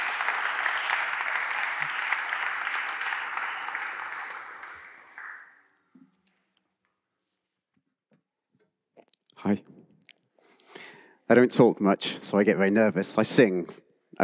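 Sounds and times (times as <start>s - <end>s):
crowd clapping: 0.0s - 5.7s
speech: 9.5s - 9.8s, 11.3s - 14.2s.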